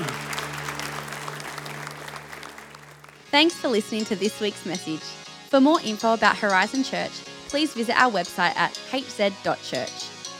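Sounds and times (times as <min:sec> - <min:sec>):
audience applause of encouragement: 0:00.0 - 0:03.4
speech: 0:03.3 - 0:10.1.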